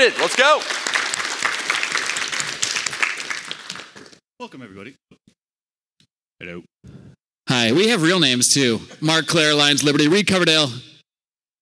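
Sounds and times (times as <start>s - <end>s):
speech: 0.0s - 0.8s, 4.4s - 5.4s, 6.4s - 10.9s
audience round of applause: 0.0s - 4.2s.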